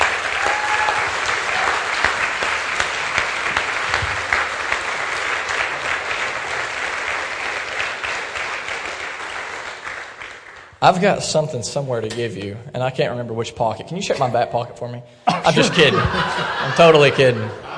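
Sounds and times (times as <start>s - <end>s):
round of applause: 0.0s - 10.8s
speech: 10.8s - 17.7s
laughter: 15.3s - 17.7s.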